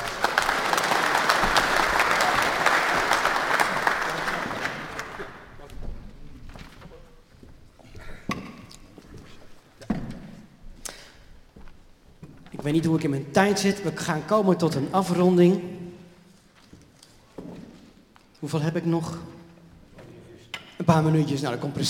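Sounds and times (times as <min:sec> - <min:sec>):
crowd applause: 0:00.0 - 0:05.6
speech: 0:12.7 - 0:15.8, 0:18.5 - 0:19.3, 0:20.9 - 0:21.8.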